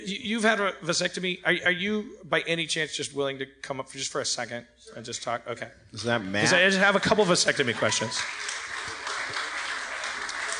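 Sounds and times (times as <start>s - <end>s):
speech: 0.1s - 8.6s
light audience applause: 6.2s - 10.5s.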